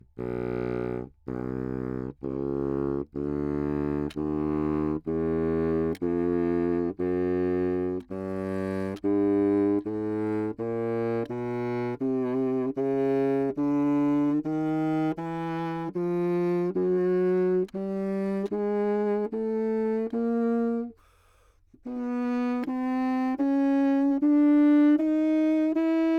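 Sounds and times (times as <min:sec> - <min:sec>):
baroque bassoon chromatic scale in anechoic chamber: 0:00.0 - 0:26.1.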